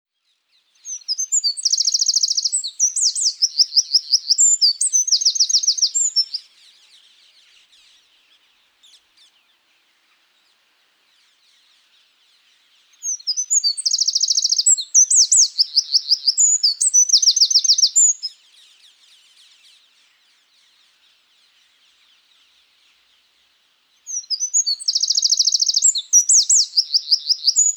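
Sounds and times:
Eurasian wren singing: 0.8 - 6.5, 13.0 - 18.4, 24.1 - 27.7.

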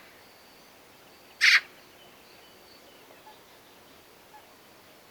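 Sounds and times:
Eurasian magpie harsh rasping calls, Pica pica: 1.4 - 1.7.

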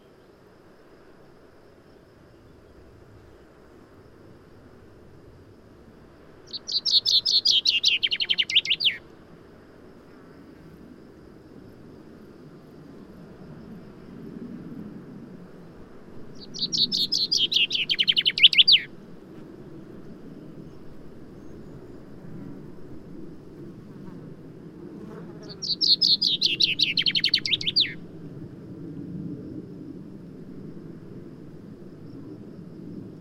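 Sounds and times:
common chaffinch song: 6.5 - 9.0, 16.4 - 18.9, 25.4 - 28.0.

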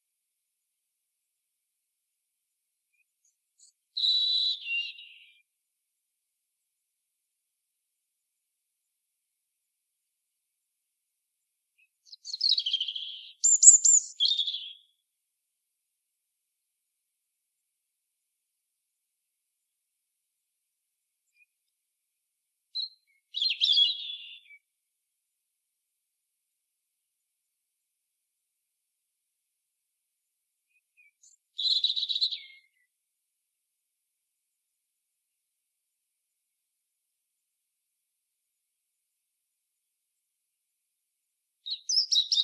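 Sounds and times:
European robin singing: 2.9 - 5.4, 11.8 - 15.0, 22.8 - 24.6, 30.7 - 32.9, 41.6 - 42.4.

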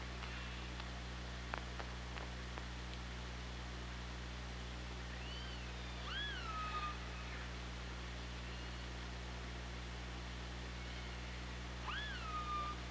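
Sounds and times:
low underwater hum: 0.0 - 12.8
killer whale calls: 5.2 - 7.5, 10.8 - 12.8.

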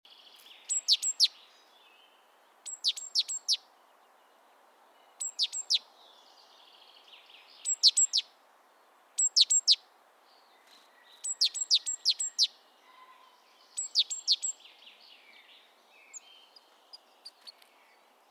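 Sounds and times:
soft background hiss: 0.1 - 18.2
great tit calling: 0.6 - 1.4, 2.7 - 3.6, 5.2 - 5.9, 7.6 - 8.2, 9.2 - 9.8, 11.1 - 14.6.

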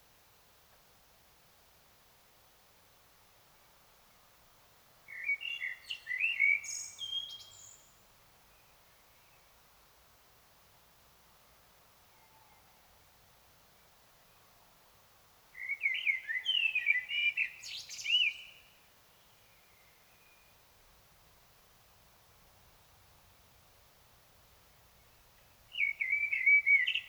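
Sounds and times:
common blackbird song: 5.1 - 8.0, 15.6 - 20.6, 25.7 - 27.0.

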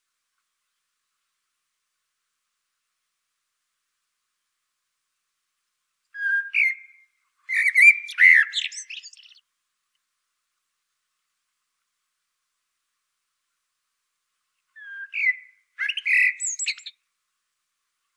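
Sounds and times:
Common blackbird Turdus merula singing warbled phrases: 6.2 - 9.4, 14.8 - 17.0.

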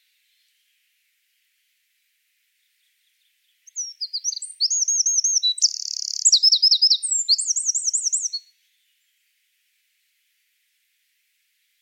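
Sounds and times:
Eurasian wren song: 2.6 - 9.3.

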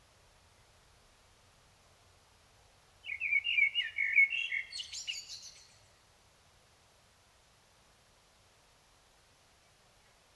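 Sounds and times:
common blackbird singing: 3.1 - 5.5.

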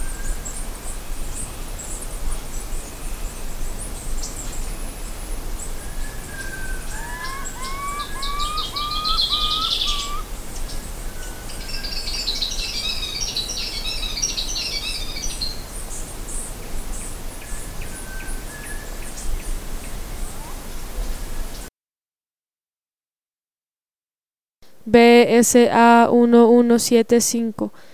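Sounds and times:
birds chirping: 0.0 - 21.7
speech: 24.9 - 27.9.

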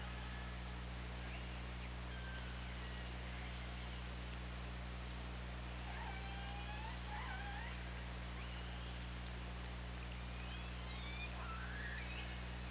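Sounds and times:
steady hum and hiss: 0.0 - 12.6
killer whale squealing calls: 5.9 - 7.8.

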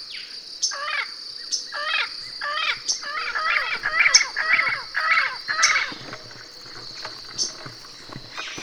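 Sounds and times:
high insect drone: 0.8 - 8.6
harsh bird calls: 1.8 - 8.6.

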